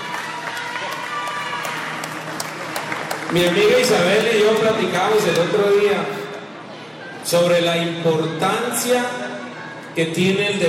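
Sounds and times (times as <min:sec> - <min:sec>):
audience applause: 0:00.0 - 0:05.6
speech: 0:03.3 - 0:06.2, 0:07.3 - 0:10.6.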